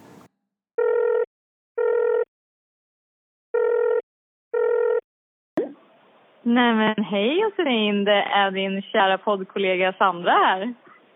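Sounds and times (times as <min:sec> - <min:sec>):
outgoing telephone call ringing on the line: 0:00.8 - 0:02.3, 0:03.6 - 0:04.0, 0:04.6 - 0:05.0
speech: 0:06.4 - 0:10.8.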